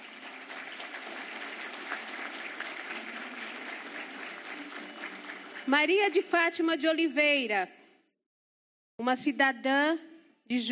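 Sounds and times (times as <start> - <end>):
warm round of applause: 0.0 - 6.7
speech: 5.7 - 7.8, 9.0 - 10.6.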